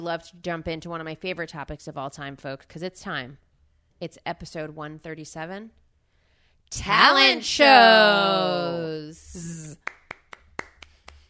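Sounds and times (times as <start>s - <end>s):
speech: 0.0s - 3.4s, 4.0s - 5.8s, 6.7s - 10.0s
polite applause from a single pair of hands: 9.4s - 11.2s.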